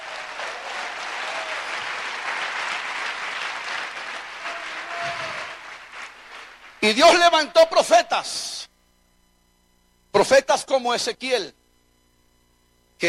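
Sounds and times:
audience applause: 0.0s - 7.2s
speech: 6.8s - 8.6s, 10.2s - 11.6s.

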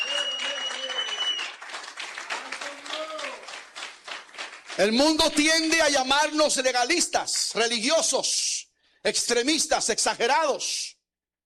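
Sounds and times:
audience applause: 0.0s - 5.9s
speech: 4.8s - 10.9s.

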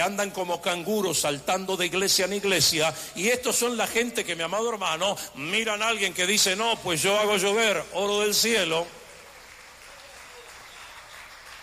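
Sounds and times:
speech: 0.0s - 9.0s
church congregation applauding: 7.1s - 11.6s.

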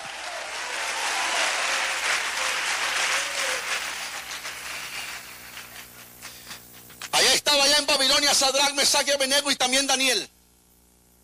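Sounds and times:
audience applauding: 0.0s - 7.1s
speech: 8.0s - 10.4s.

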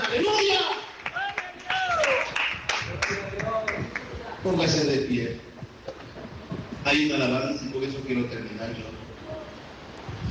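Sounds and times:
audience clapping: 0.0s - 4.2s
speech: 4.4s - 5.5s, 6.9s - 9.0s.

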